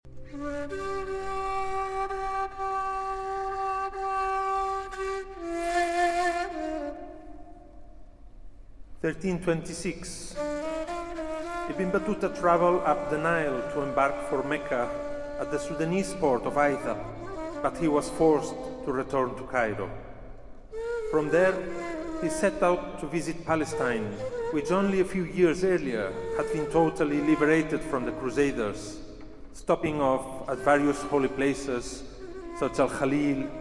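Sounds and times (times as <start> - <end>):
taqsim instrumental improvisation: 0.1 - 33.5
person narrating: 9.0 - 10.4, 11.7 - 20.0, 21.1 - 33.5.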